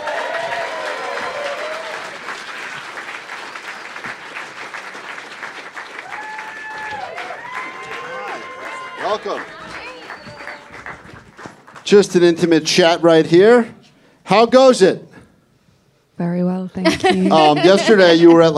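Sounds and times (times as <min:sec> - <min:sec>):
crowd whooping and cheering: 0:00.0 - 0:02.4, 0:06.0 - 0:11.0
audience applause welcoming a band: 0:00.0 - 0:12.4
speech: 0:09.2 - 0:09.6, 0:11.9 - 0:15.0, 0:16.2 - 0:18.5
laughter: 0:16.8 - 0:18.5.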